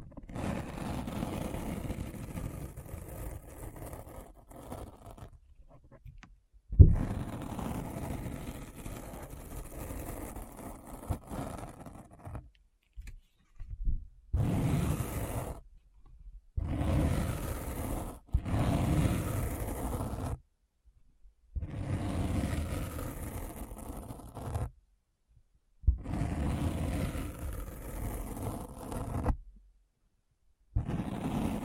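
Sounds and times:
deep brain scratch rumbling noise: 0:00.0 - 0:06.0, 0:06.7 - 0:12.5, 0:14.4 - 0:15.6, 0:16.6 - 0:20.4, 0:21.6 - 0:24.7, 0:25.9 - 0:29.4, 0:30.8 - 0:31.6.

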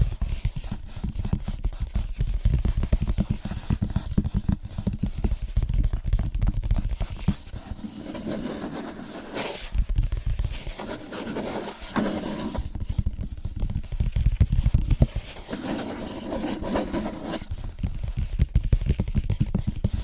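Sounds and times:
rapid tapping on different surfaces: 0:00.0 - 0:20.0.

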